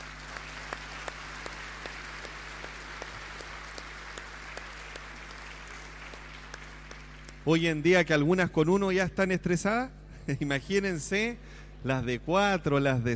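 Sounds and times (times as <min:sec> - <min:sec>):
audience applause: 0:00.0 - 0:07.4
speech: 0:07.4 - 0:13.1.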